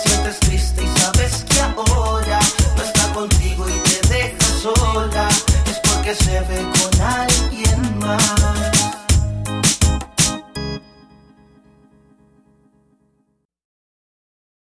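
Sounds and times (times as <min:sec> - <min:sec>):
reggaeton mix: 0:00.0 - 0:10.9.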